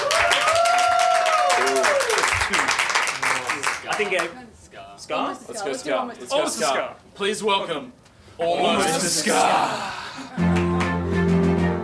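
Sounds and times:
audience applause: 0:00.0 - 0:04.3, 0:09.3 - 0:11.2
speech: 0:04.0 - 0:10.5.

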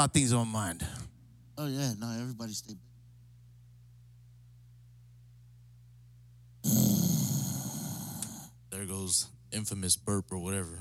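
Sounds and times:
speech: 0:00.0 - 0:01.0, 0:01.6 - 0:02.9, 0:08.8 - 0:10.7
grunt while stretching: 0:06.6 - 0:08.5.

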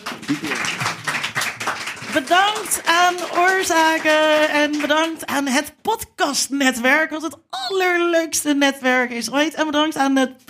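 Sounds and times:
audience applause: 0:00.0 - 0:05.2
speech: 0:00.3 - 0:00.7, 0:02.2 - 0:10.4.

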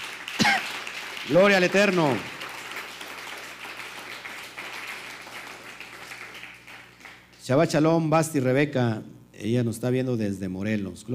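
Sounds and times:
applause: 0:00.0 - 0:07.5
speech: 0:01.3 - 0:02.3, 0:07.5 - 0:11.1.

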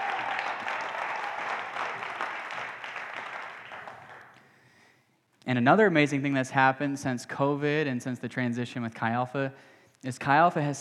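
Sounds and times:
audience applause: 0:00.0 - 0:04.4
speech: 0:05.5 - 0:10.7.

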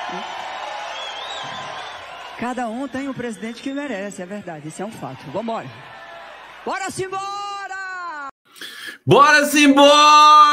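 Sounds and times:
high whoop or whistle: 0:00.0 - 0:02.3
crowd cheering in a steady dense roar: 0:00.0 - 0:08.3
speech: 0:00.1 - 0:00.4, 0:02.4 - 0:06.0, 0:06.6 - 0:07.4, 0:09.0 - 0:10.5.

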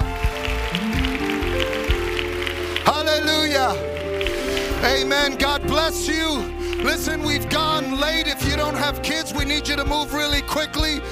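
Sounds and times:
crowd clapping: 0:00.0 - 0:08.6
sustained keyboard or organ tones: 0:00.0 - 0:11.0
low thumps: 0:00.0 - 0:11.1
speech: 0:04.8 - 0:11.1.

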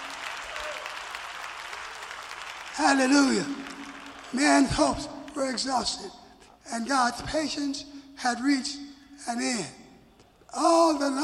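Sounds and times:
audience clapping hands: 0:00.0 - 0:06.0
speech: 0:02.8 - 0:03.7, 0:04.3 - 0:09.8, 0:10.5 - 0:11.2.

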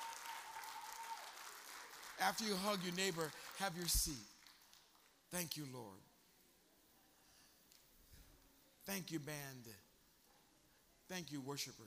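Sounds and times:
audience clapping hands: 0:00.0 - 0:05.2
speech: 0:02.2 - 0:04.3, 0:05.3 - 0:06.1, 0:08.9 - 0:09.9, 0:11.1 - 0:11.8.

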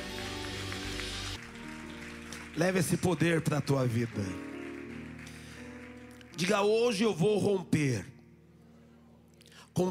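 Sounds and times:
audience applauding: 0:00.0 - 0:07.2
speech: 0:02.6 - 0:04.5, 0:06.4 - 0:08.1, 0:09.8 - 0:09.9.

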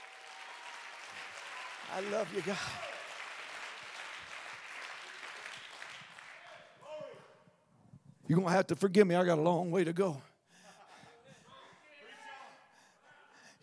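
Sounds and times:
audience clapping hands: 0:00.0 - 0:06.7
speech: 0:01.9 - 0:02.9, 0:08.3 - 0:10.3.

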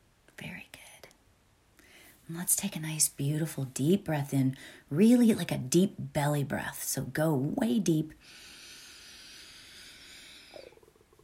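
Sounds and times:
speech: 0:02.3 - 0:08.5
stomach rumbling: 0:10.5 - 0:11.2.

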